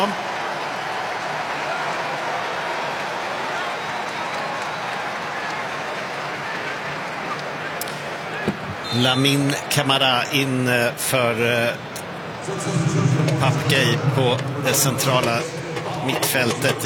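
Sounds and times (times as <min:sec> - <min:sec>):
speech: 0:00.0 - 0:00.2, 0:08.4 - 0:16.8
stadium crowd applauding a substituted player: 0:00.0 - 0:16.8.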